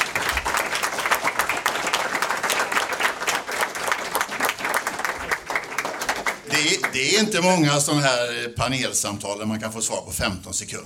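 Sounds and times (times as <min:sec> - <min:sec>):
audience applause: 0:00.0 - 0:07.8
speech: 0:07.0 - 0:10.8.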